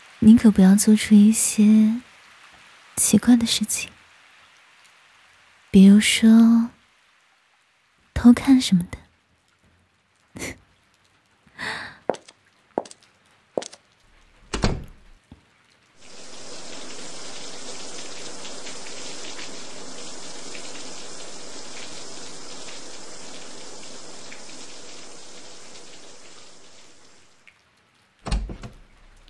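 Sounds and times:
shower water running: 0:00.0 - 0:08.3, 0:15.9 - 0:27.6, 0:28.5 - 0:29.2
speech: 0:00.2 - 0:02.1, 0:03.0 - 0:04.0, 0:05.7 - 0:06.8, 0:08.2 - 0:09.0, 0:10.4 - 0:10.6.

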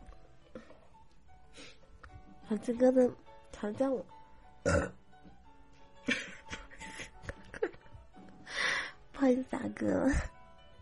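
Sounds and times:
speech: 0:02.5 - 0:05.0, 0:09.2 - 0:10.4
loud coarse burp: 0:04.6 - 0:05.0
quiet throaty sounds: 0:04.6 - 0:05.0.

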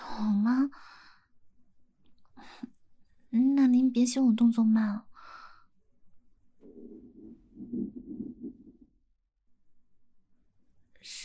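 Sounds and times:
speech: 0:03.9 - 0:05.1
stomach growling: 0:06.6 - 0:08.9.

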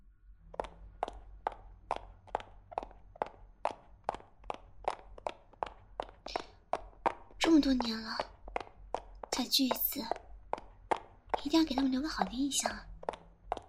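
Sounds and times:
quick footsteps of someone hurrying on foot: 0:00.4 - 0:13.6
speech: 0:07.6 - 0:08.3, 0:09.4 - 0:10.2, 0:11.5 - 0:12.9.

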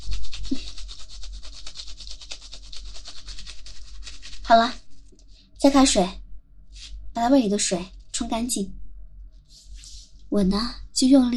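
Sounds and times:
brush scrubbing: 0:00.0 - 0:05.5
speech: 0:04.5 - 0:04.8, 0:05.6 - 0:06.2, 0:07.2 - 0:08.8, 0:10.3 - 0:11.3.

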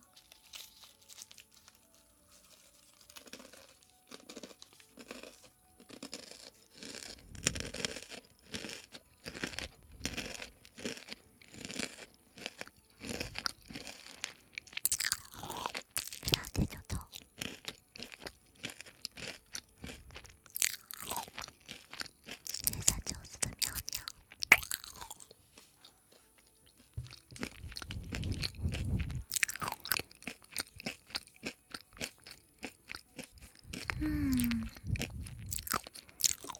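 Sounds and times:
packaging crinkling: 0:00.0 - 0:05.5
crunchy green pea snacks being chewed: 0:00.0 - 0:36.5.

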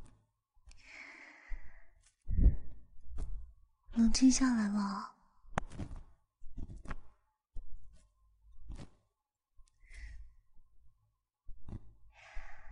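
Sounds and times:
person breathing slowly in and out: 0:00.7 - 0:02.9, 0:09.7 - 0:10.5, 0:12.0 - 0:12.7
speech: 0:04.1 - 0:05.1.

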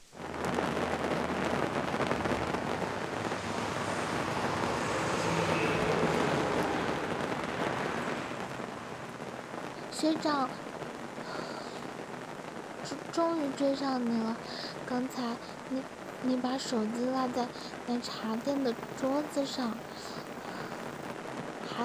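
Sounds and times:
rain falling outside: 0:00.0 - 0:21.8
speech: 0:10.0 - 0:10.6, 0:13.2 - 0:20.1.

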